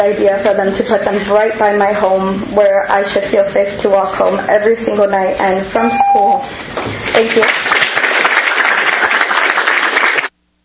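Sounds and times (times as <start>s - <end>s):
speech: 0.0s - 7.8s
audience clapping after a public statement: 6.8s - 10.4s.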